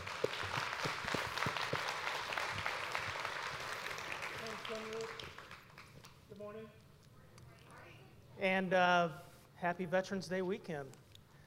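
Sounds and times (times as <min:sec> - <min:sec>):
audience round of applause: 0:00.0 - 0:05.9
speech: 0:08.4 - 0:11.0.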